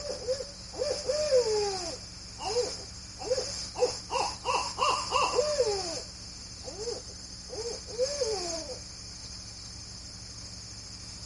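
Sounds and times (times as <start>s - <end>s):
owl: 0.0s - 8.9s.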